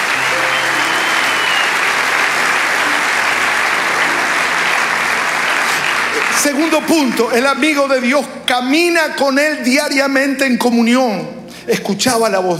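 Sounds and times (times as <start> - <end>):
audience applause: 0.0 - 8.4
speech: 6.4 - 12.5.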